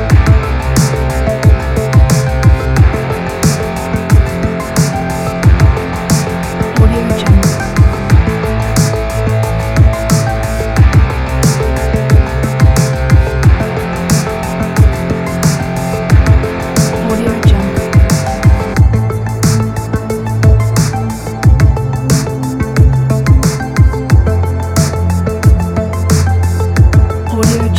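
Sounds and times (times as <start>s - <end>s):
80s synth wave music: 0.0s - 27.7s.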